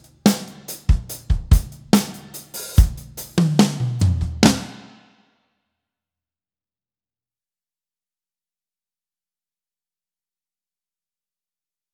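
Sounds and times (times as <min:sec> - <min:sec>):
drums: 0:00.0 - 0:05.2.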